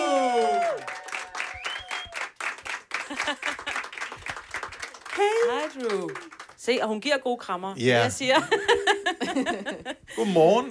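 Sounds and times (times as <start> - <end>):
small audience clapping and cheering to welcome a guest: 0.0 - 6.9
laughter: 3.0 - 4.0, 8.3 - 10.1
speech: 3.1 - 3.7, 5.2 - 10.7.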